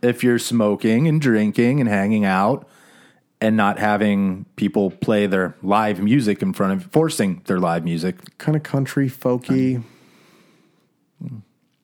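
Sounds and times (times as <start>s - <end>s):
speech: 0.0s - 2.8s, 3.4s - 9.9s, 11.2s - 11.4s
soft steady low hiss: 0.0s - 11.8s
heavy breath into microphone: 2.7s - 3.3s.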